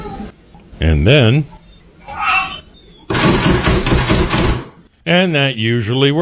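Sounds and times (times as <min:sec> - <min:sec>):
speech: 0:00.9 - 0:01.5, 0:05.1 - 0:06.2
pet rapidly batting a door handle: 0:03.1 - 0:04.7.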